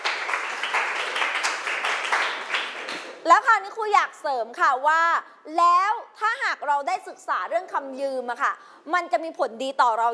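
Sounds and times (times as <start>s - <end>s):
classroom applause: 0.0s - 3.2s
speech: 3.3s - 10.1s.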